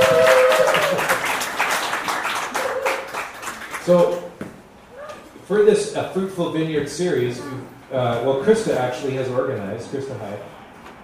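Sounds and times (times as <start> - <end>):
audience clapping and cheering: 0.0 - 4.4
speech: 3.9 - 4.2, 5.5 - 11.0.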